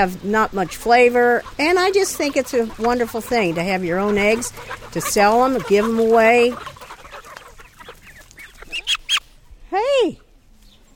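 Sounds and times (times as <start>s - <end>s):
speech: 0.0s - 6.8s, 10.0s - 10.2s
chickens clucking on a farm at feeding time: 0.0s - 10.8s.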